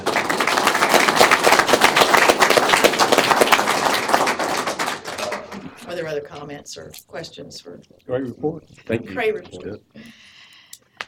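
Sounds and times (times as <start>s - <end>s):
crowd applause: 0.0s - 5.8s
speech: 6.0s - 10.2s.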